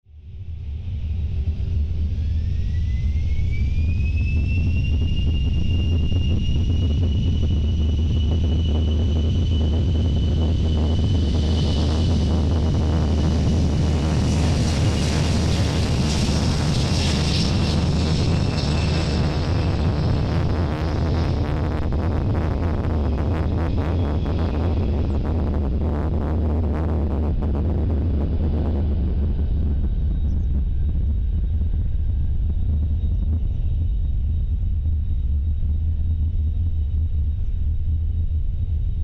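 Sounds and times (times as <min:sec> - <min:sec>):
jet taking off: 0:00.4 - 0:39.0.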